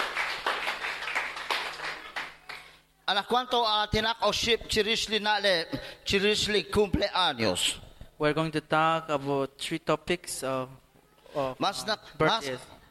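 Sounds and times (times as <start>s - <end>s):
crowd applause: 0.0s - 2.8s
speech: 3.1s - 12.8s.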